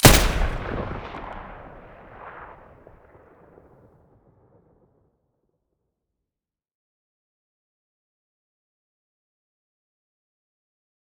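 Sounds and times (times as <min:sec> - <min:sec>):
M249 machine gun muzzle firing: 0:00.0 - 0:02.5.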